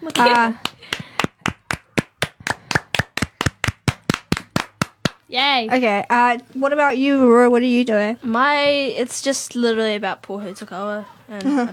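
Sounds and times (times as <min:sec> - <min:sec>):
speech: 0:00.0 - 0:00.7, 0:05.3 - 0:11.7
small group clapping: 0:00.0 - 0:05.2.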